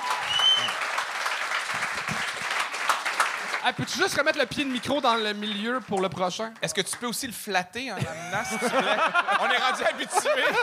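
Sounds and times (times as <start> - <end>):
audience applause: 0.0 - 7.0
speech: 3.6 - 10.6
laughter: 8.0 - 10.6.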